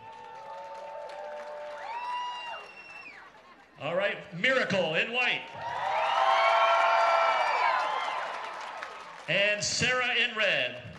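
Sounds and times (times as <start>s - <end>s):
high sustained whoops and shouts: 0.0s - 3.2s, 5.6s - 8.4s
crowd cheering and applauding: 0.0s - 3.6s, 5.4s - 10.9s
speech: 3.8s - 5.8s, 9.3s - 10.9s.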